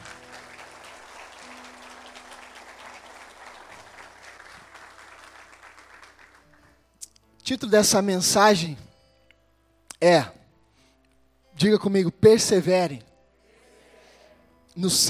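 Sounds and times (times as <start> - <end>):
audience applauding: 0.0 - 6.7
speech: 7.5 - 8.9, 10.0 - 10.4, 11.6 - 13.1, 14.8 - 15.0.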